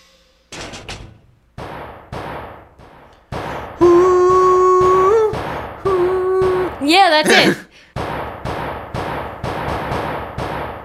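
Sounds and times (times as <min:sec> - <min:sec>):
bangs and thuds from a car chase sound effect: 0:00.5 - 0:10.8
sustained tonal whine: 0:03.8 - 0:06.6
speech: 0:07.1 - 0:07.6.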